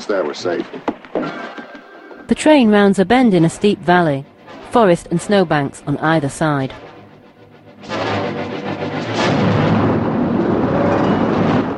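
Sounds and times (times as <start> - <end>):
speech: 0.0 - 1.5, 2.3 - 6.8
avalanche of snow plunging down a steep forested valley toppling pine trees: 7.7 - 11.7.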